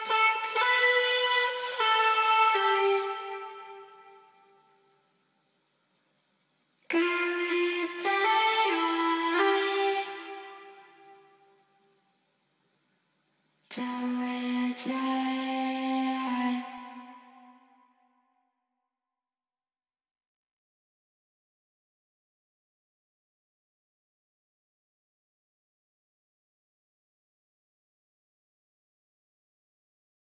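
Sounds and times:
voice: 0.0 - 3.8, 6.9 - 10.8, 13.7 - 17.3.

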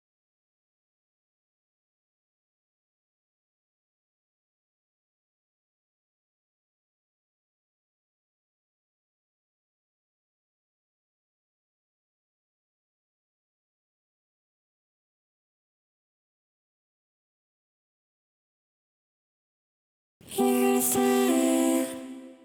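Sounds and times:
vocal harmonies: 20.2 - 22.4.

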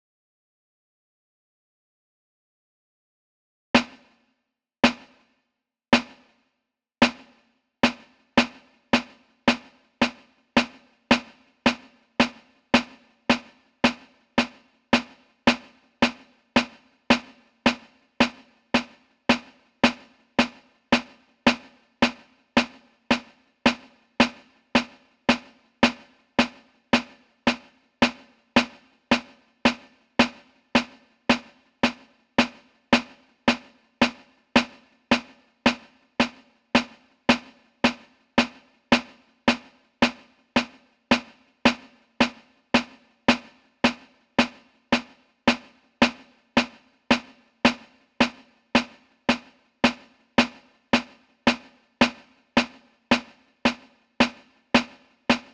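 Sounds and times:
snare drum: 3.8 - 5.4, 6.0 - 6.4, 7.0 - 55.5.

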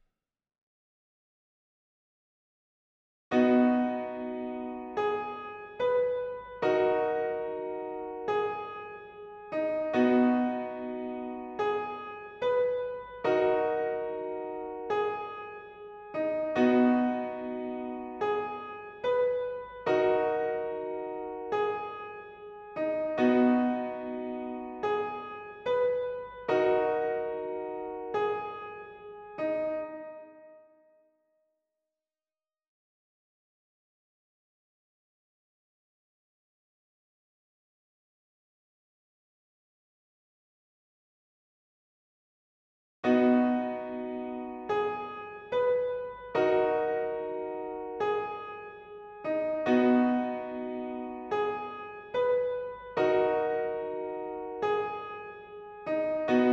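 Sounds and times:
piano: 3.3 - 31.0, 43.0 - 56.5.

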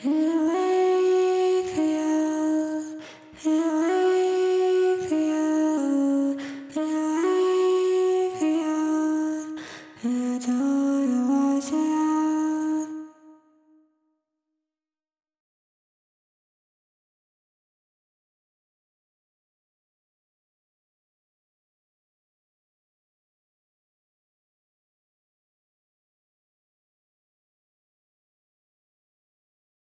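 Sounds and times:
vocals: 0.0 - 13.8.

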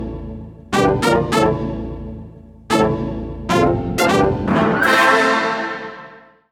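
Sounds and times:
orchestra playing: 0.7 - 1.7, 2.7 - 5.6.

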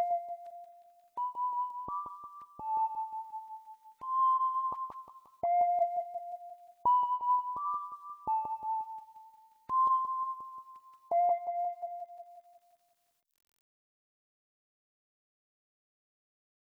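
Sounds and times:
background synthesizer: 0.0 - 12.8.

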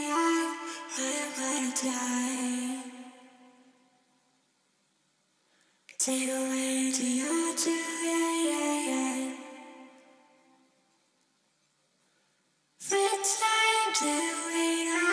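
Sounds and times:
person's voice: 0.0 - 3.0, 6.0 - 9.7, 12.8 - 15.1.

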